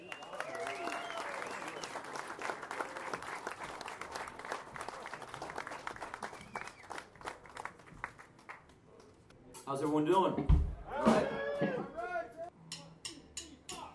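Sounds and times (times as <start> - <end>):
audience applause welcoming a performer: 0.0 - 8.8
speech: 9.7 - 11.8.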